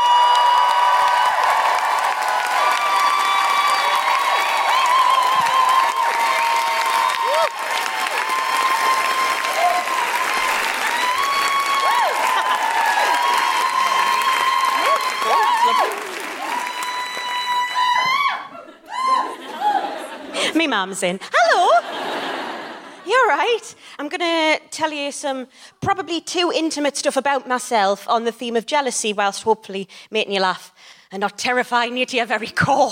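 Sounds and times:
audience applauding at a Newcastle comedy show: 0.0s - 18.4s
laughter: 12.1s - 13.2s, 18.5s - 20.6s, 21.4s - 23.2s
speech: 20.8s - 21.8s, 23.3s - 32.9s.

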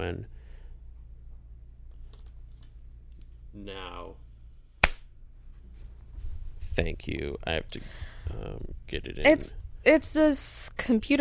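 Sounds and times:
speech: 0.1s - 0.4s, 3.6s - 4.2s, 6.8s - 11.2s
single hand clap: 4.8s - 5.1s.

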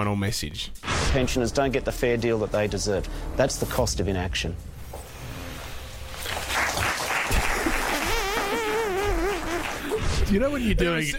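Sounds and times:
speech: 0.0s - 4.7s, 10.3s - 11.1s
sparse polite applause: 6.2s - 9.9s.

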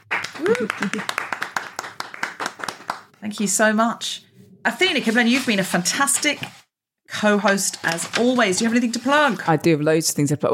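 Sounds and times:
round of applause: 0.0s - 3.2s
speech: 0.4s - 1.3s, 3.2s - 10.5s.

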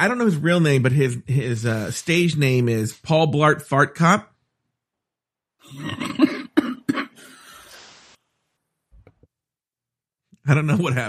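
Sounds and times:
speech: 0.0s - 4.3s, 5.6s - 6.3s, 10.5s - 11.0s
heavy coughing: 5.6s - 7.6s
raspy wheezing breath: 7.2s - 8.2s.

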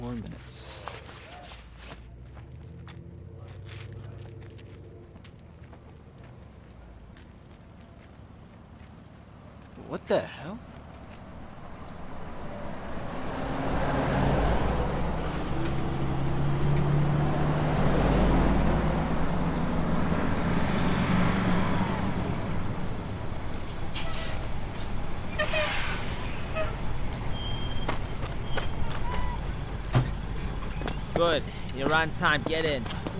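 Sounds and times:
truck convoy engine drone: 0.0s - 33.1s
speech: 9.9s - 10.7s, 31.2s - 33.0s
truck air brakes hissing: 23.9s - 26.5s.

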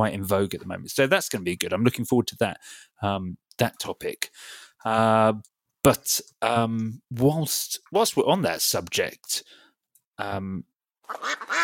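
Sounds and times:
speech: 0.0s - 9.6s, 10.2s - 11.6s
duck quack sound effect used as a podcast jingle: 11.1s - 11.6s.

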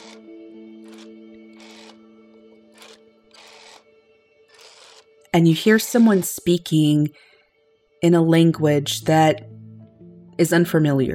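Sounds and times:
rotary phone dial turning and spinning back: 0.0s - 3.9s, 4.5s - 6.4s
speech: 5.3s - 7.3s, 8.0s - 9.5s, 10.4s - 11.1s.

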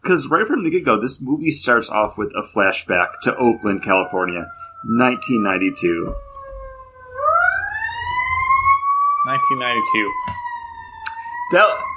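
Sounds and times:
speech: 0.1s - 6.3s, 9.2s - 10.4s, 11.5s - 11.9s
fire engine siren from a nearby fire station: 1.9s - 11.9s.

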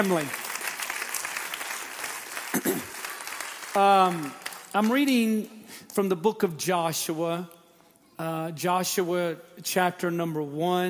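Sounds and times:
speech: 0.0s - 0.4s, 3.7s - 7.6s, 8.2s - 10.8s
audience clapping hands: 0.0s - 6.0s.

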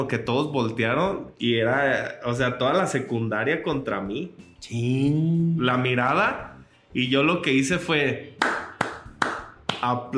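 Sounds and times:
speech: 0.0s - 8.5s, 9.8s - 10.1s
hand clap: 8.4s - 10.1s.

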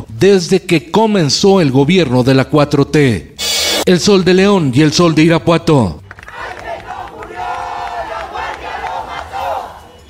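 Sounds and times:
speech: 0.2s - 3.3s, 3.9s - 6.0s
marching students chanting a protest slogan: 6.2s - 10.0s.

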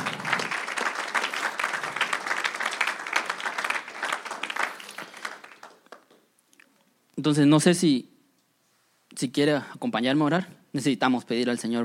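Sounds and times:
audience applauding: 0.0s - 6.2s
speech: 7.2s - 8.1s, 9.2s - 11.8s.

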